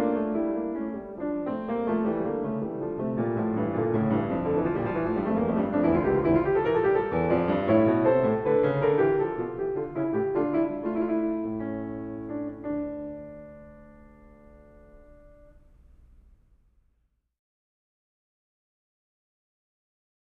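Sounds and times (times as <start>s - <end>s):
fugue on clavier: 0.0s - 16.2s.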